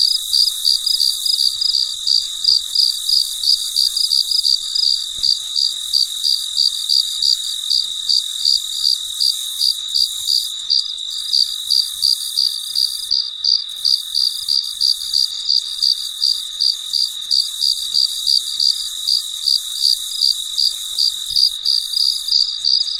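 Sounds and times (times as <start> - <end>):
background hiss of insects: 0.0 - 22.9
cricket chirping: 0.0 - 22.9.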